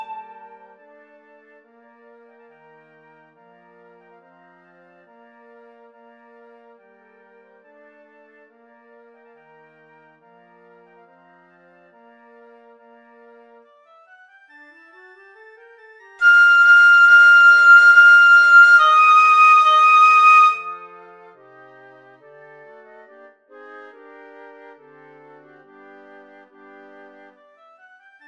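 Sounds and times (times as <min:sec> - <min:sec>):
piccolo: 0:00.0 - 0:01.5, 0:16.2 - 0:21.4.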